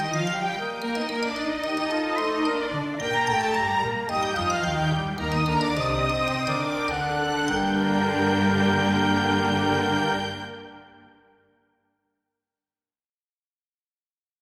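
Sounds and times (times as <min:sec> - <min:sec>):
wind and string ensemble: 0:00.0 - 0:11.0.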